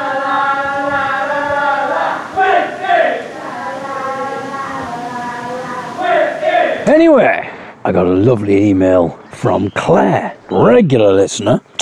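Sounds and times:
drunken group singing a chanting melody: 0.0s - 6.9s
drunken people shouting: 0.0s - 7.3s
speech: 7.2s - 11.7s.

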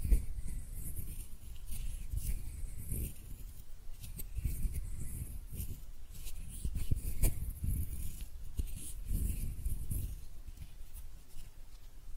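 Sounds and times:
hands rubbing and brushing against each other: 0.0s - 12.1s.

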